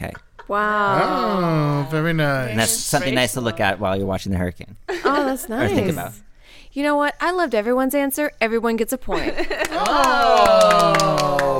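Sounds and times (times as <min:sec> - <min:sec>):
speech: 0:00.0 - 0:11.5
laughter: 0:04.9 - 0:06.2, 0:09.1 - 0:11.5
golf clap: 0:09.6 - 0:11.5.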